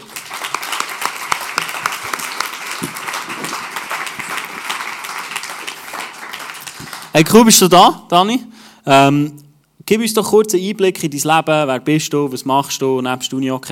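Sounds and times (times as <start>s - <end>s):
crowd applause: 0.0s - 7.1s
speech: 7.2s - 13.7s.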